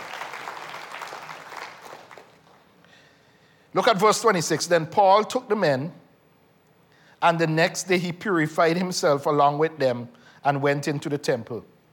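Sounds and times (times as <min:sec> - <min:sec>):
round of applause: 0:00.0 - 0:02.8
speech: 0:03.8 - 0:06.0, 0:07.2 - 0:11.7.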